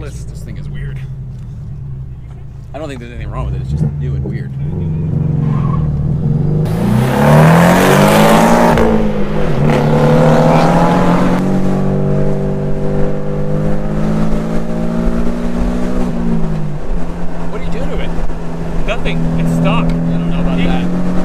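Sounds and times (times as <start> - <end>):
turbocharged car accelerating hard: 0.0 - 21.2
speech: 2.8 - 5.7.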